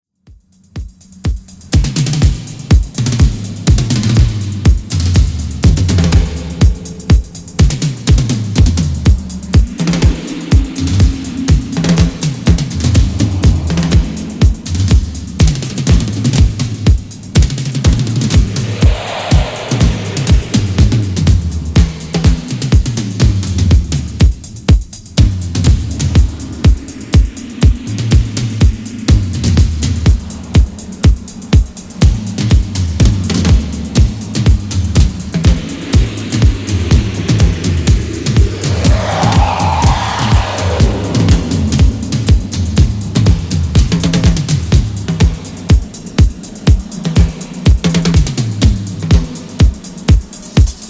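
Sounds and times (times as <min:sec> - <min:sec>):
drums: 0:00.2 - 0:50.8.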